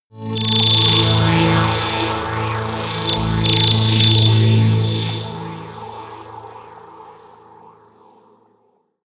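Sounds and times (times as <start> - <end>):
sci-fi drones: 0.2 - 7.1.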